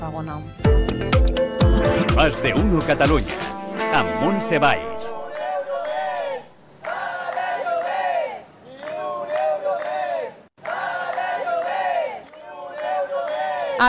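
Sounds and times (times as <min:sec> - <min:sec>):
speech: 0:00.0 - 0:01.4, 0:02.0 - 0:05.2
protesters chanting at a street demonstration: 0:04.0 - 0:13.8.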